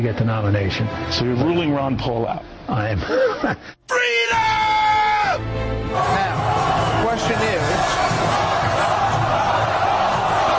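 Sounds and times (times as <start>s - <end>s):
speech: 0.0s - 8.3s
crowd cheering: 4.2s - 10.5s.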